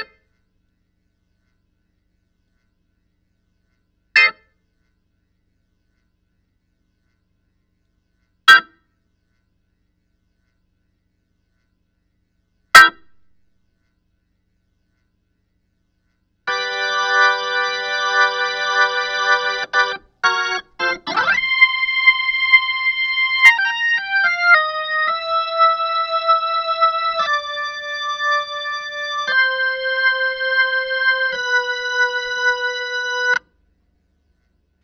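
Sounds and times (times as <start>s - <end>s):
organ: 16.5s - 33.5s.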